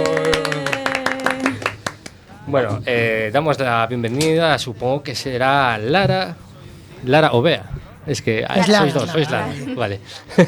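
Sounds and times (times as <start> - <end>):
people clapping: 0.0 - 4.6, 8.1 - 10.0
speech: 2.5 - 6.4, 7.0 - 10.4
laughter: 5.4 - 10.4.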